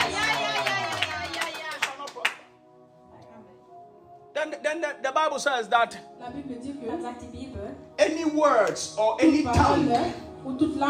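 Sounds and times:
audience clapping hands: 0.0s - 2.5s
speech: 4.4s - 10.8s.

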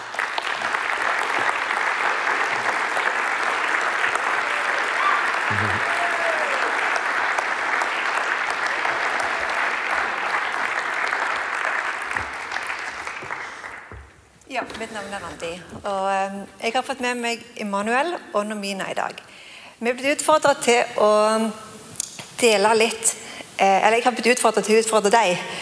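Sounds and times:
audience applause: 0.0s - 14.8s
speech: 14.8s - 21.6s, 22.4s - 25.6s.

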